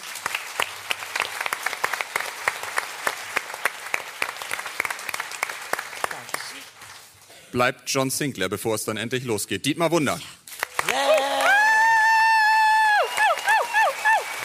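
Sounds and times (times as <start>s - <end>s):
audience applause: 0.0s - 7.0s, 10.6s - 14.4s
speech: 7.5s - 11.1s.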